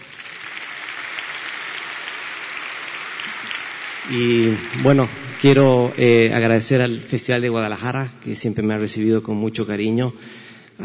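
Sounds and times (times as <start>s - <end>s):
audience applause: 0.0s - 6.8s
speech: 4.1s - 10.8s.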